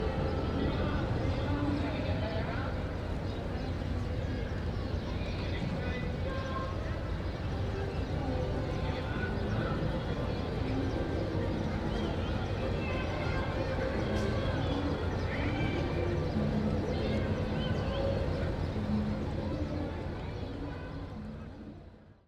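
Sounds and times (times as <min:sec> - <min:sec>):
music at City Place in Chile: 0:00.0 - 0:02.8, 0:07.4 - 0:22.2
birds at City Place in Chile: 0:00.0 - 0:21.6
large crowd at City Place in Chile: 0:00.0 - 0:22.2.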